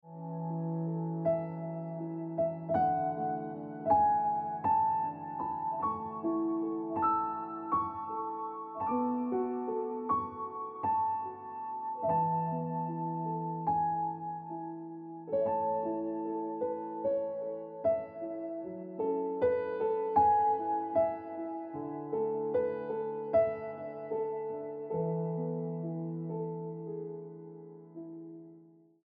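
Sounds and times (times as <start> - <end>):
piano ringtone music: 0.1 - 28.4.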